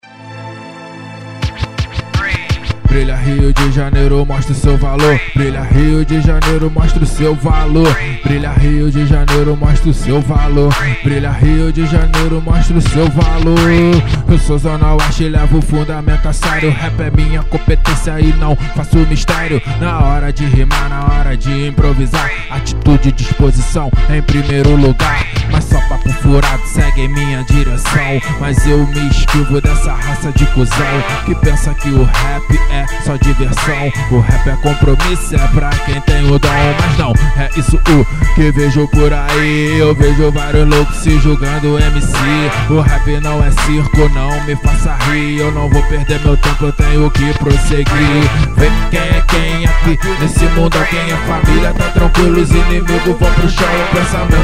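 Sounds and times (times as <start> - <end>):
rap music: 1.0 - 54.4.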